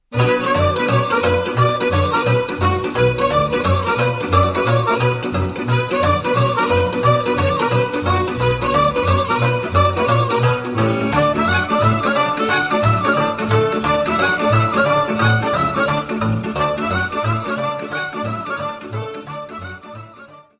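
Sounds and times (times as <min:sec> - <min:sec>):
Romanian sirba folk dance music: 0:00.0 - 0:20.5.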